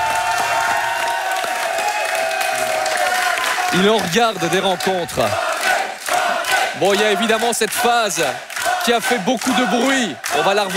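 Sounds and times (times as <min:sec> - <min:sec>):
crowd applause: 0:00.0 - 0:10.7
faint murmur of voices: 0:03.6 - 0:10.7
speech: 0:03.7 - 0:05.4, 0:06.8 - 0:10.7.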